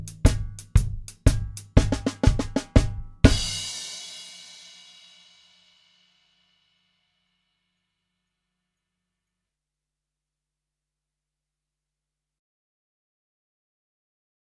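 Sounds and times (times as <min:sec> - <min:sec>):
drum kit solo for beginning or intermediate student: 0:00.0 - 0:05.6.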